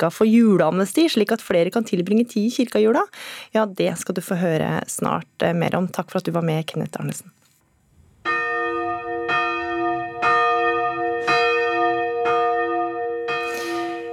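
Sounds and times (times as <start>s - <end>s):
speech: 0.0s - 7.4s
church bells ringing: 8.3s - 14.1s.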